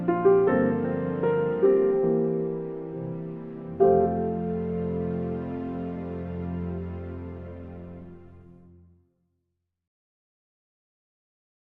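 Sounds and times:
string music: 0.0s - 9.0s.

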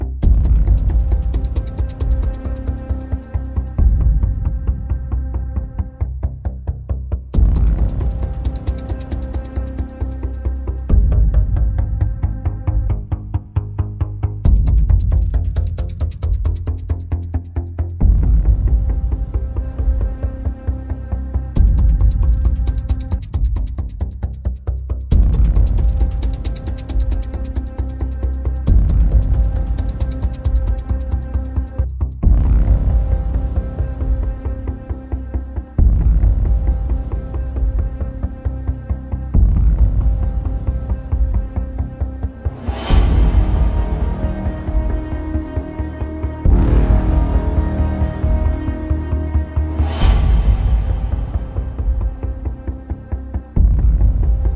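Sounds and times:
percussion pulses: 0.2s - 6.0s, 7.3s - 13.4s, 14.3s - 54.5s.

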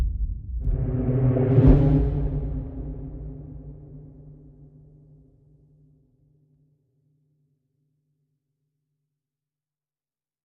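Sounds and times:
horror music: 0.6s - 4.9s.

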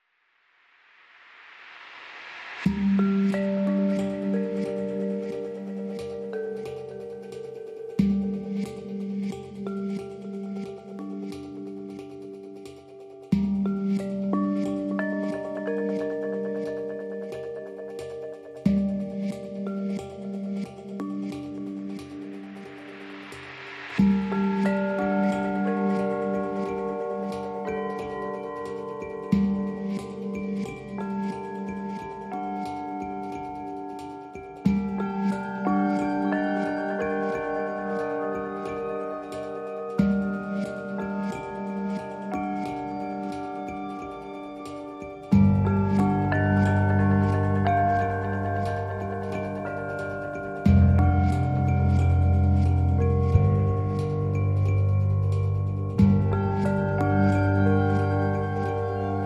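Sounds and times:
mallet percussion: 1.6s - 59.2s
bass: 45.3s - 59.2s.

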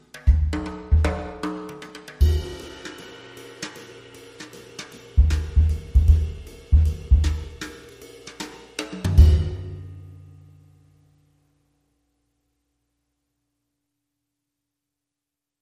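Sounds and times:
drum brushes: 0.0s - 10.2s.

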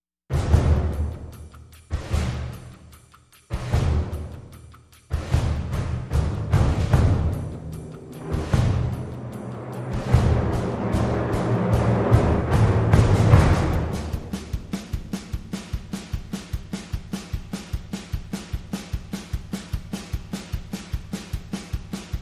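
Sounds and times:
percussion: 0.3s - 22.2s.

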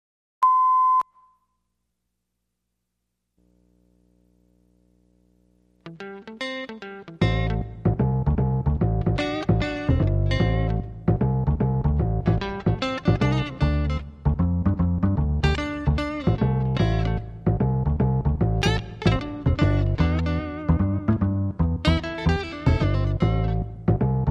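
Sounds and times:
Texas blues music: 5.8s - 24.2s.

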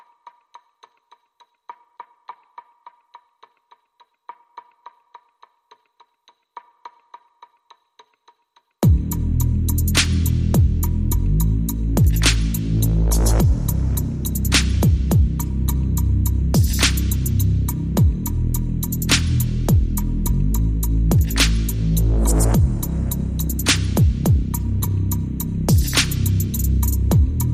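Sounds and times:
drums: 0.0s - 11.0s, 12.0s - 15.5s, 16.6s - 20.0s, 21.1s - 24.6s, 25.7s - 27.5s
bass: 8.8s - 27.5s.

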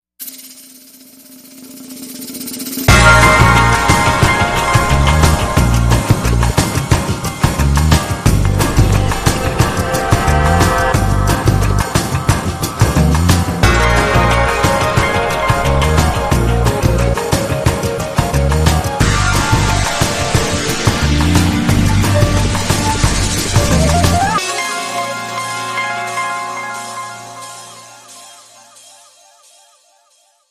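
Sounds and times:
jazzy music: 2.9s - 28.9s.

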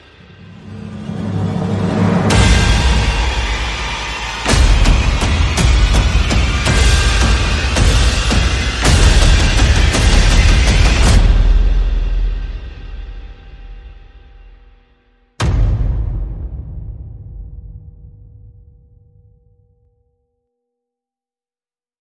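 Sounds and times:
sound effects: 0.0s - 11.5s
percussion: 0.0s - 20.0s.

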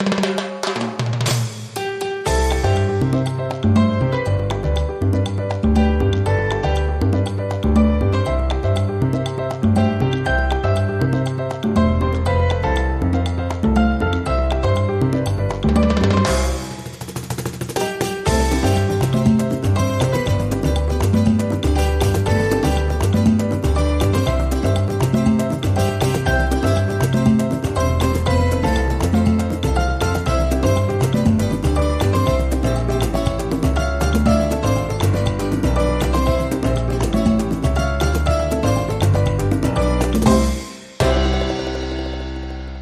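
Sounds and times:
salsa music: 0.0s - 42.8s.

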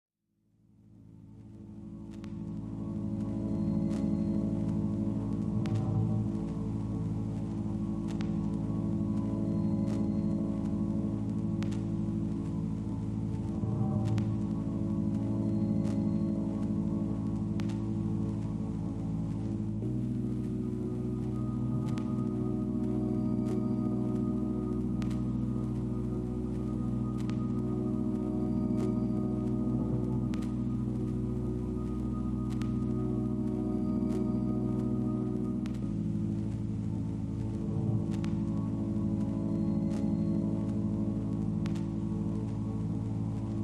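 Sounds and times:
wood drone tones: 1.1s - 43.6s.

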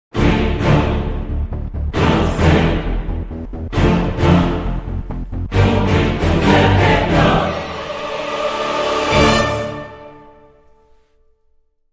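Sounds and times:
dramatic music sting without percussion: 0.2s - 10.6s.

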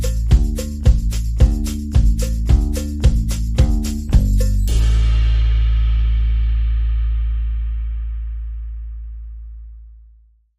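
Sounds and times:
drums: 0.0s - 8.1s
bass: 0.0s - 10.5s.

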